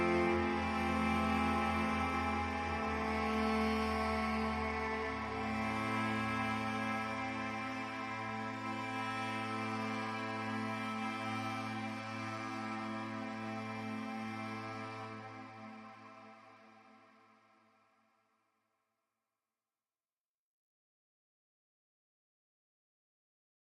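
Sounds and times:
low woodwind: 0.0s - 17.9s.

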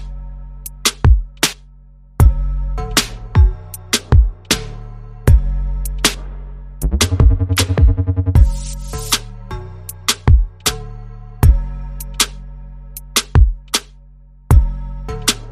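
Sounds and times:
bass: 0.0s - 15.4s
drums: 0.7s - 1.6s, 3.0s - 4.7s, 5.3s - 9.2s, 10.1s - 10.7s, 13.2s - 13.9s.

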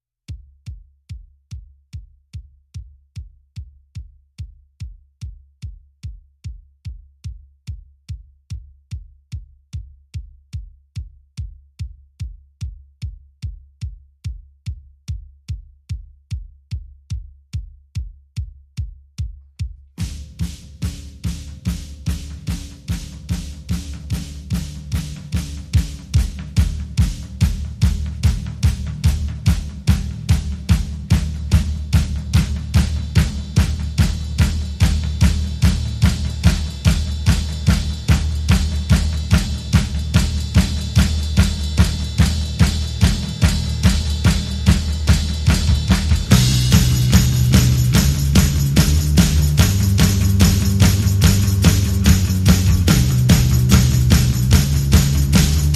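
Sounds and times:
drums: 0.3s - 55.7s
bass: 20.0s - 55.7s.

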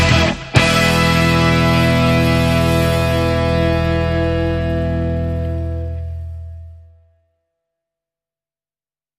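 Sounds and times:
rock lower drum: 0.0s - 6.6s.

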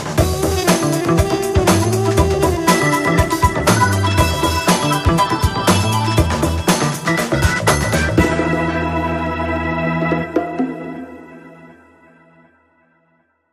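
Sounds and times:
funk music bumper: 0.1s - 10.6s.

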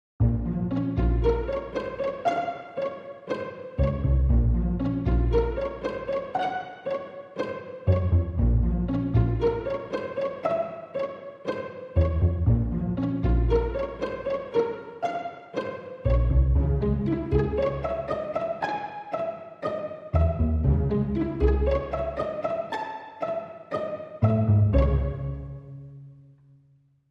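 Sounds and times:
strings: 0.2s - 26.4s.

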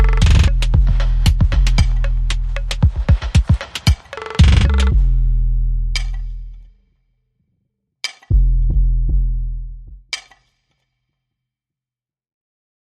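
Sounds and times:
bass: 0.0s - 2.8s, 4.6s - 6.7s, 8.3s - 10.2s
drums: 0.0s - 5.1s.

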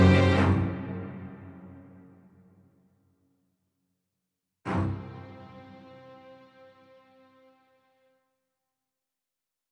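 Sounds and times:
strings: 0.0s - 2.4s, 4.7s - 8.2s.

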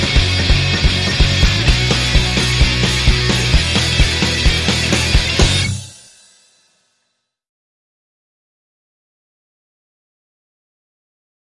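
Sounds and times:
lead guitar: 0.0s - 5.9s.

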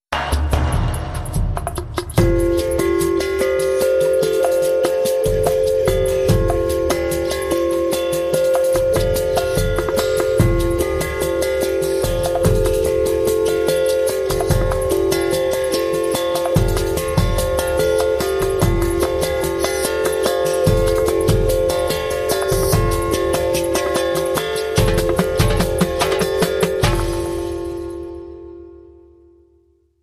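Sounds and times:
sweet beat: 0.1s - 28.2s.

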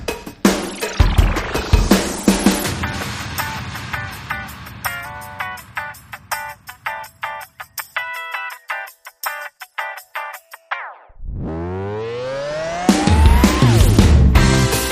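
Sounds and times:
synth bass licks without fuzz: 0.5s - 2.7s, 11.1s - 14.7s.

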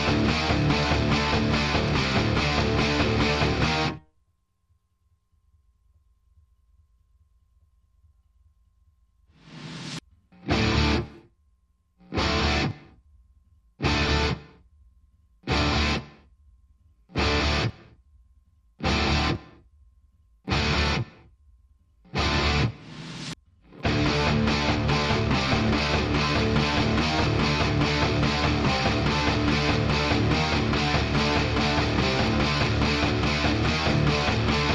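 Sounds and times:
guitars playing: 0.0s - 4.0s, 10.4s - 11.2s, 12.1s - 12.9s, 13.8s - 14.6s, 15.5s - 16.2s, 17.2s - 17.8s, 18.8s - 19.5s, 20.5s - 21.1s, 22.2s - 22.8s, 23.8s - 34.7s.

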